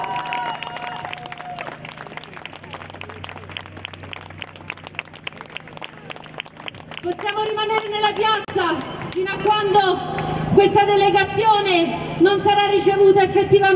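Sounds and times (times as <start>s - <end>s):
crowd applause at outdoor rally: 0.0s - 9.2s
speech: 7.0s - 13.7s.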